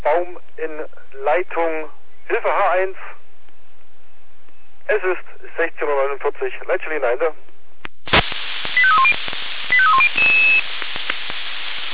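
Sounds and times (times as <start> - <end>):
hissy crackling radio channel: 0.0 - 3.2, 4.9 - 7.4, 8.0 - 11.9
speech: 0.1 - 3.2, 4.9 - 7.5
emergency services radio alarm tones: 8.1 - 10.7.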